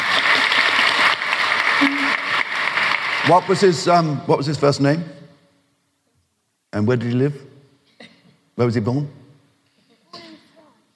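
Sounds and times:
audience clapping: 0.0s - 4.2s
speech: 3.3s - 5.2s, 6.7s - 7.5s, 8.6s - 9.2s.

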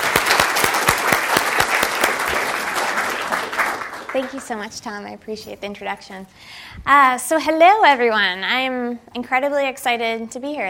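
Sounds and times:
audience applause welcoming a speaker at Stanford: 0.0s - 4.6s
speech: 4.2s - 10.6s.

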